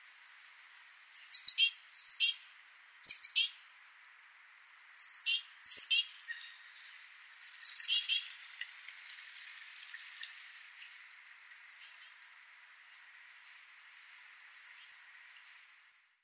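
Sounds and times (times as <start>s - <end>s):
great tit calling: 1.2s - 2.4s, 3.0s - 3.6s, 5.0s - 6.9s, 7.6s - 8.3s.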